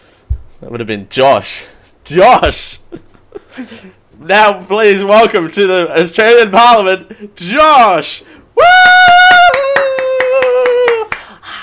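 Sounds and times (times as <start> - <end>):
speech: 0.6 - 3.0, 3.6 - 9.2
steady rhythmic clapping: 8.8 - 11.4.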